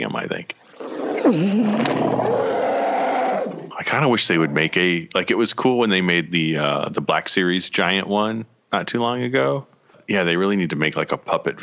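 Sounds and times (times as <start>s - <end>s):
monster roar made from recorded dachshund: 0.8s - 3.7s
speech: 1.3s - 2.4s, 3.8s - 11.6s.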